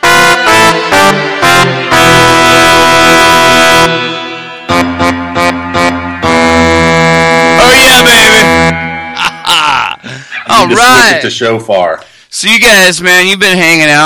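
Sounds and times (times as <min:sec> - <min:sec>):
synthesized trumpet on Korg M1 keyboard: 0:00.0 - 0:10.2
laughter: 0:09.0 - 0:11.2
speech: 0:10.7 - 0:14.0.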